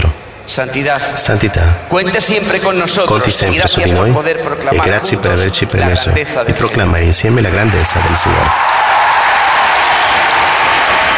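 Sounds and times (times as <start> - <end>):
speech: 0.5 - 9.0
applause for the Cardinal Archbishop of Madrid with the Pope joining in: 8.5 - 11.1.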